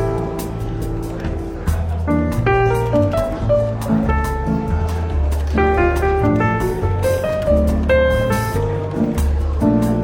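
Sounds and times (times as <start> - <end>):
murmur in a London bookshop café: 0.0 - 10.0
relaxed jazz in a London bookshop café: 0.0 - 10.0.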